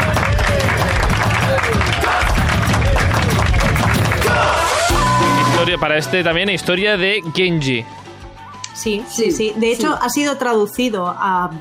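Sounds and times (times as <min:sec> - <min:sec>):
applause: 0:00.0 - 0:05.0
speech: 0:05.8 - 0:08.0, 0:08.8 - 0:11.6.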